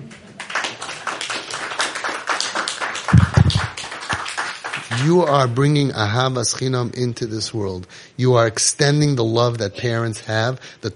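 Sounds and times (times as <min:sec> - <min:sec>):
audience applause: 0:00.4 - 0:05.3
speech: 0:05.0 - 0:10.9.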